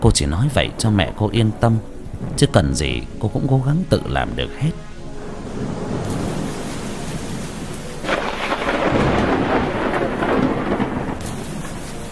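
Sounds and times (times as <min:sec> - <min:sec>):
speech: 0:00.1 - 0:04.9
heavy rain: 0:00.4 - 0:12.0
thunder: 0:02.1 - 0:02.9, 0:05.5 - 0:12.0.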